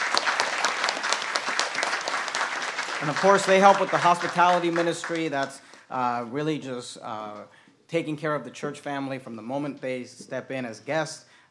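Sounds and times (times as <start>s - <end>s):
church congregation clapping for hospitality ministry volunteers: 0.0s - 5.9s
speech: 3.0s - 11.4s.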